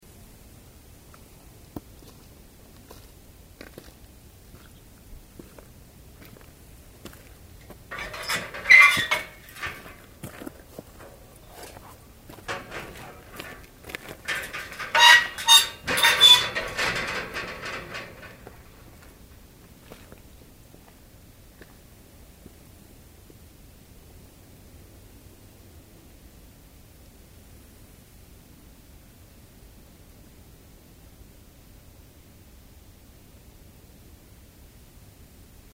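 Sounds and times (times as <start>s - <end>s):
gate: 7.6s - 19.5s.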